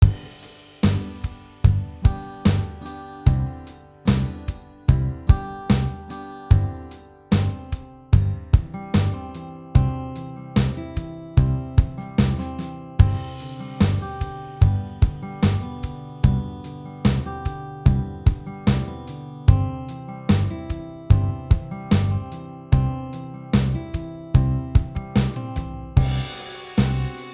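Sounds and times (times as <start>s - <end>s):
instrumental arrangement: 0.0s - 27.3s.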